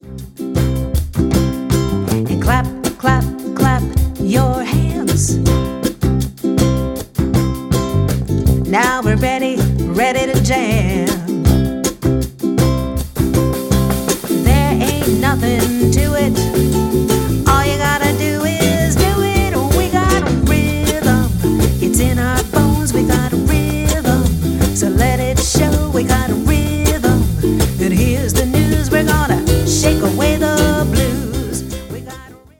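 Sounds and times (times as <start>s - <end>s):
rhythm: 0.0s - 32.5s.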